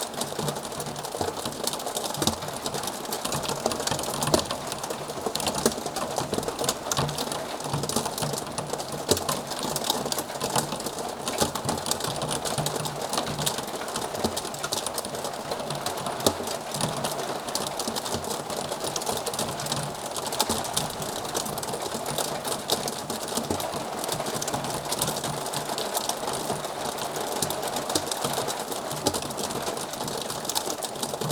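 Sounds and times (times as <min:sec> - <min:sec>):
rain in calm weather: 0:00.0 - 0:31.3.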